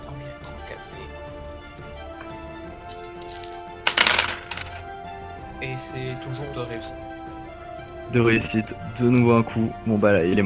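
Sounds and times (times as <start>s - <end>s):
four dice rolled during a tabletop role-playing game of Degenesis: 2.8s - 4.9s
speech: 5.8s - 7.2s, 8.1s - 10.4s.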